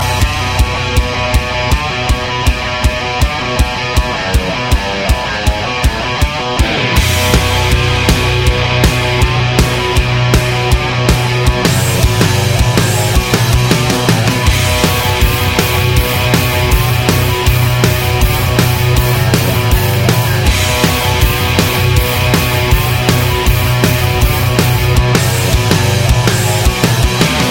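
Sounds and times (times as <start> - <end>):
rock music: 0.0 - 27.4.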